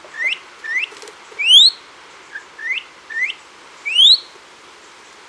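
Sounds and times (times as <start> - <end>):
bird singing rising whistles and short pips: 0.2 - 1.8, 2.6 - 4.3.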